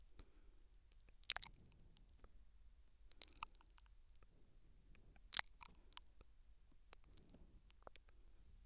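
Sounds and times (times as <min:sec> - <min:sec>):
soft nibbling on the left ear: 0:01.0 - 0:02.3, 0:03.1 - 0:04.3, 0:04.9 - 0:06.3, 0:06.9 - 0:08.2.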